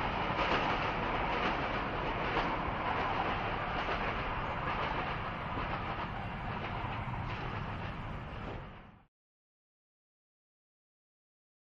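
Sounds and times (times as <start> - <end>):
fast electric train passing by and away: 0.0 - 9.1.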